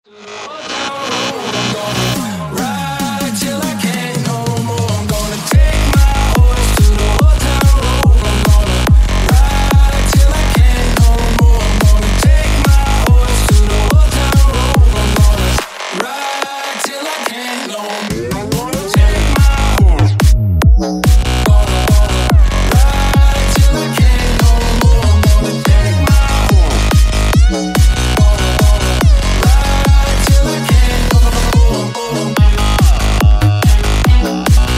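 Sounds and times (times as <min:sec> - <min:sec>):
groove remix music: 0:00.1 - 0:34.7.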